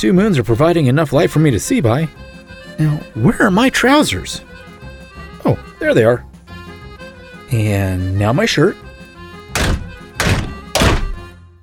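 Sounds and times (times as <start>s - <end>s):
speech: 0.0s - 2.2s, 2.8s - 4.5s, 5.4s - 6.3s, 7.5s - 8.8s
door being struck to break it down: 9.6s - 11.3s.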